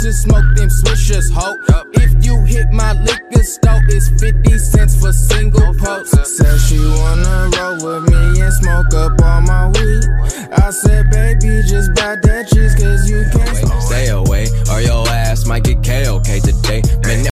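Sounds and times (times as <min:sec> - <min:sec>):
hip hop ringtone: 0:00.0 - 0:17.3.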